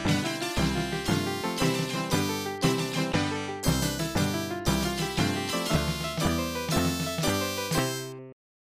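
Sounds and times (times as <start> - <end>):
match win jingle: 0.1 - 8.2.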